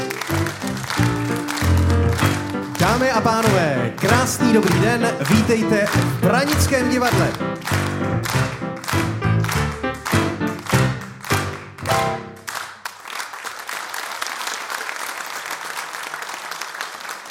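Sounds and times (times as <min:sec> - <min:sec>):
theme jingle of a Hungarian animated TV series: 0:00.0 - 0:12.5
audience applause at Branické divadlo: 0:00.0 - 0:17.2
speech: 0:03.1 - 0:08.5.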